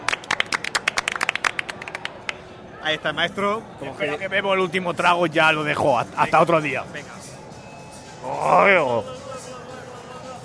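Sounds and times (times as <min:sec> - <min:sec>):
audience applause for a singer: 0:00.0 - 0:02.4
speech: 0:02.8 - 0:07.2, 0:08.2 - 0:09.2.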